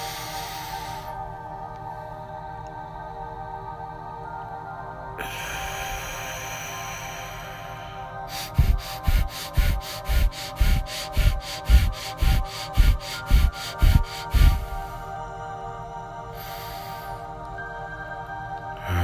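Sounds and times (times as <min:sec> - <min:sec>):
breathing exercise forceful breaths: 0:00.0 - 0:01.5, 0:05.2 - 0:15.5, 0:16.3 - 0:17.4, 0:18.8 - 0:19.0.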